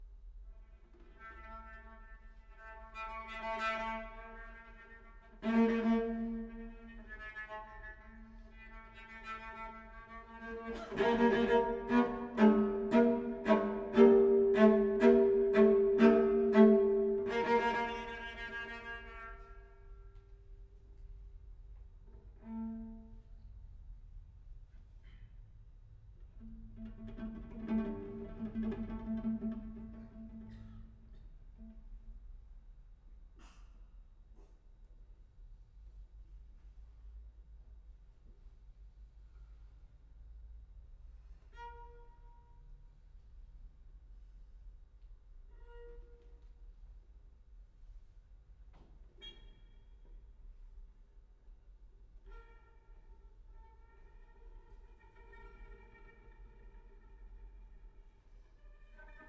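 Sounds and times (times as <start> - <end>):
solo cello sonata: 0.6 - 20.3, 22.1 - 23.6, 26.2 - 32.2, 52.1 - 59.2.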